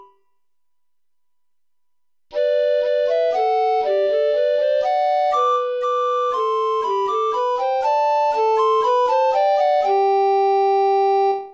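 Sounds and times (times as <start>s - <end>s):
play-along backing music: 2.4s - 11.3s.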